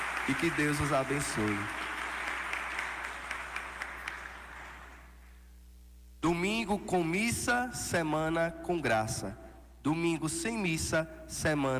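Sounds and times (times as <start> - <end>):
audience applauding: 0.0 - 5.1
speech: 0.2 - 1.8, 6.2 - 11.7.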